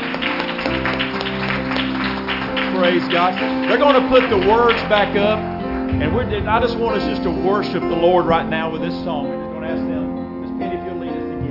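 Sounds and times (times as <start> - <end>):
congregation clapping in praise during a church service: 0.0 - 8.2
speech: 2.8 - 10.0
low sustained tone: 5.4 - 9.6.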